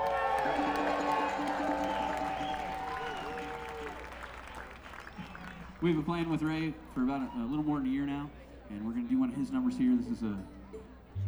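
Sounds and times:
audience applause and cheering: 0.0s - 5.9s
speech: 0.4s - 0.8s, 5.8s - 10.6s.

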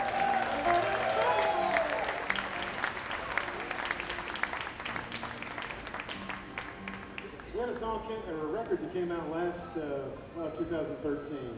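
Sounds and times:
audience applause welcoming a performer: 0.0s - 7.5s
speech: 8.2s - 11.5s.

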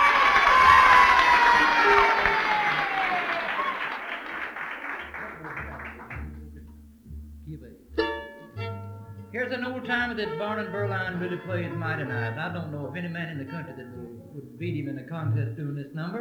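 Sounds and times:
audience applause: 0.0s - 6.4s
laughter: 0.0s - 6.6s, 9.5s - 13.9s
speech: 9.9s - 16.1s.

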